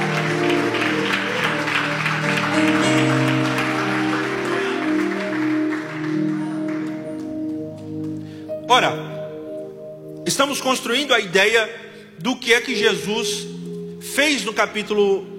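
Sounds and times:
audience applauding: 0.0 - 8.4
speech: 8.7 - 9.0, 10.4 - 15.3.

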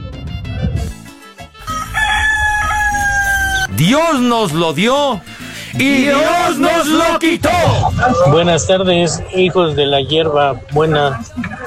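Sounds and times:
rooster crowing: 1.6 - 3.7
speech: 3.8 - 11.6.

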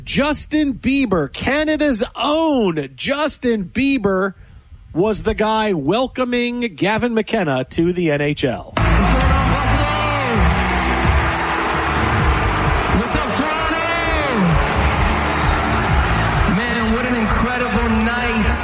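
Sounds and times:
speech: 0.0 - 8.8
arena crowd booing: 8.8 - 18.6.

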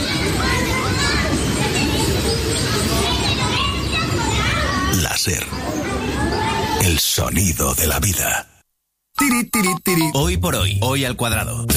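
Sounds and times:
children playing in a city park: 0.0 - 6.9
steady noise: 0.0 - 11.7
speech: 7.2 - 8.5, 9.3 - 11.7.

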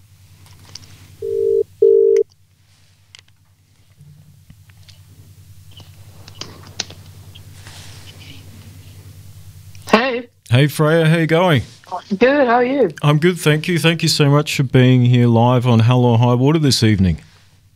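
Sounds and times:
telephone call ringing tones: 1.2 - 2.2
speech: 10.5 - 17.3.

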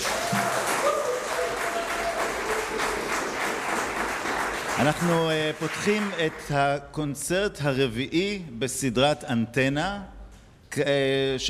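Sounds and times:
concert audience applause: 0.0 - 6.4
speech: 4.8 - 10.2, 10.8 - 11.4.

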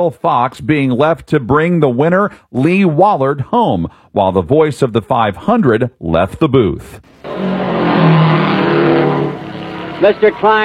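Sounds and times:
speech: 0.0 - 8.4, 10.0 - 10.6
Lee Wallard's No. 99 race car roaring at Indianapolis Motor Speedway: 7.1 - 10.6.

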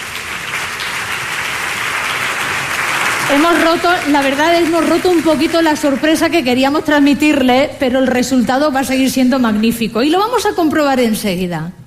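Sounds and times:
audience applause for a chamber choir: 0.0 - 6.5
speech: 3.3 - 11.8.

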